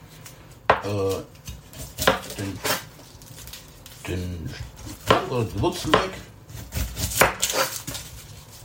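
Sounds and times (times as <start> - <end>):
knife cutting onions on a cutting board: 0.7 - 2.9, 4.6 - 8.0
speech: 0.8 - 1.4, 4.1 - 4.7, 5.3 - 6.3.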